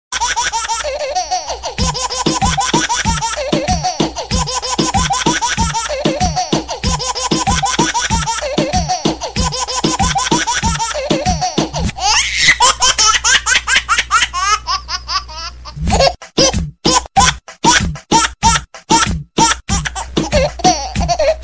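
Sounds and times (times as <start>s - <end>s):
baby laughing remix: 0.2s - 21.4s.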